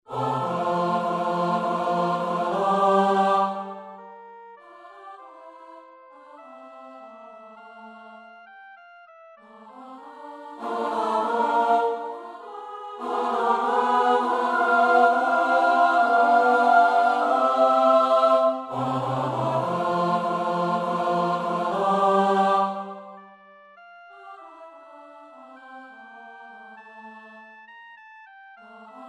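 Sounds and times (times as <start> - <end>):
full choir singing: 0.1 - 4.2, 4.8 - 8.2, 9.4 - 23.3, 28.7 - 29.0.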